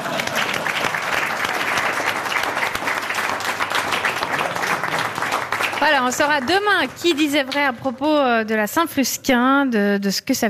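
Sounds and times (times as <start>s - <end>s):
audience applause: 0.0s - 7.7s
speech: 5.8s - 10.4s.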